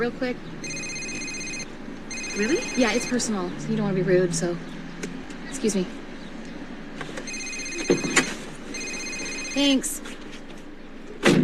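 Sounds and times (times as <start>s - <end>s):
speech: 0.0s - 0.7s, 2.4s - 4.7s, 5.5s - 6.0s, 7.9s - 8.3s, 9.6s - 10.0s
phone ringing: 0.6s - 3.3s, 7.2s - 10.0s.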